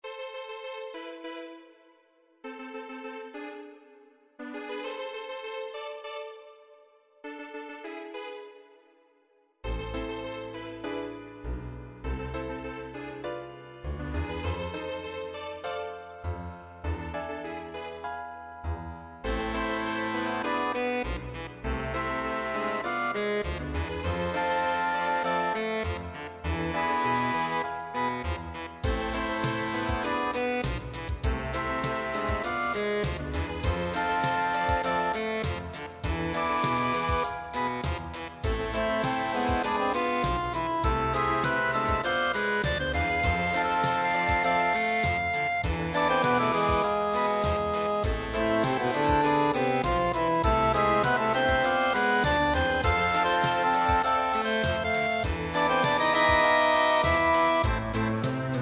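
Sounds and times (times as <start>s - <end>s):
tango music: 2.4s - 8.8s, 9.6s - 58.6s.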